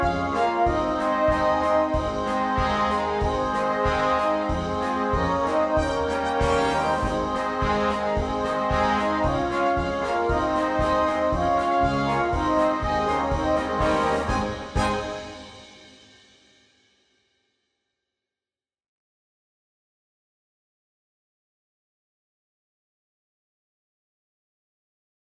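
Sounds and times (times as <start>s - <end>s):
polka with bells: 0.0s - 16.0s.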